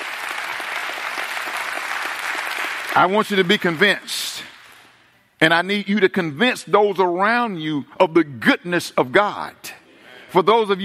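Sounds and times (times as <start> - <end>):
audience hand clapping in praise: 0.0 - 5.0
speech: 3.0 - 4.5, 5.4 - 10.8.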